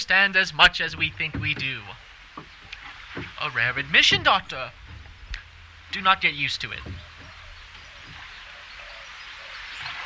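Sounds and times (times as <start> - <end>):
speech: 0.0 - 2.5, 3.4 - 4.8, 5.9 - 7.0
running water: 0.0 - 10.0.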